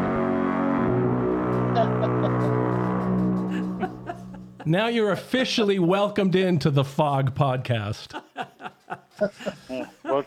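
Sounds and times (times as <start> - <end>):
foghorn blast: 0.0 - 4.6
laughter: 1.8 - 2.6, 3.5 - 4.8, 8.1 - 10.2
speech: 4.6 - 8.2, 9.2 - 10.2.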